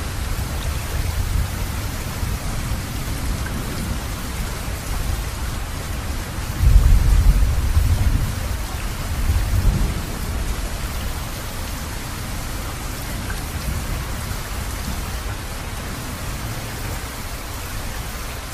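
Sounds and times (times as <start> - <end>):
rain recorded binaurally: 0.0 - 18.5.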